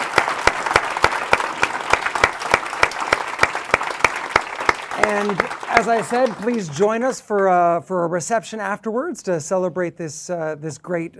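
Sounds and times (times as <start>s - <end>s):
crowd applauding: 0.0s - 7.5s
speech: 5.0s - 11.1s.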